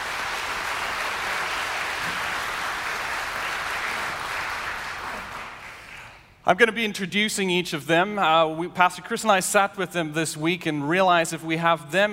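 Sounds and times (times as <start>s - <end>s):
audience applause: 0.0s - 6.2s
speech: 6.5s - 12.1s.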